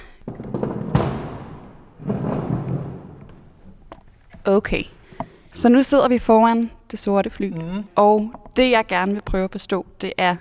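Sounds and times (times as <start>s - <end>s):
chair being dragged across floor: 1.8s - 3.8s
speech: 4.4s - 10.3s.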